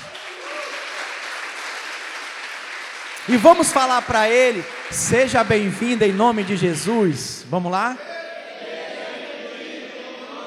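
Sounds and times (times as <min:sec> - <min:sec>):
applause: 0:00.0 - 0:07.3
speech: 0:03.3 - 0:08.1.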